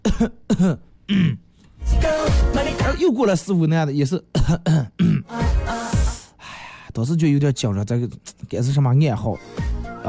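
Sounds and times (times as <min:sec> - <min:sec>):
man coughing: 0:00.0 - 0:01.5, 0:04.3 - 0:05.3
speech: 0:00.1 - 0:01.4, 0:02.0 - 0:06.0, 0:06.9 - 0:10.0.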